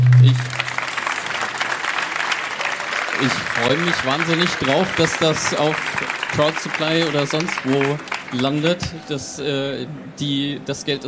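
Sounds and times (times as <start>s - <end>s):
low hum: 0.0s - 0.9s
audience applause: 0.0s - 9.0s
speech: 3.2s - 11.0s.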